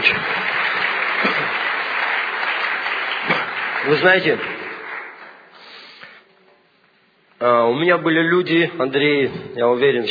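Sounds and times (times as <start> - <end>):
audience applause: 0.0 - 5.9
speech: 3.9 - 4.6, 7.4 - 10.1.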